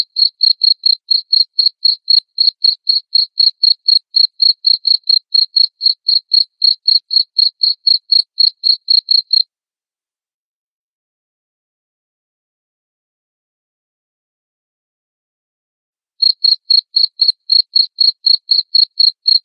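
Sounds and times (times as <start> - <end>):
cricket chirping: 0.0 - 9.4, 16.2 - 19.4.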